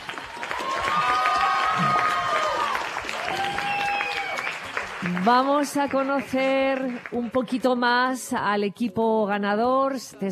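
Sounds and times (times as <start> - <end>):
audience applause: 0.0 - 7.4
speech: 5.0 - 10.3.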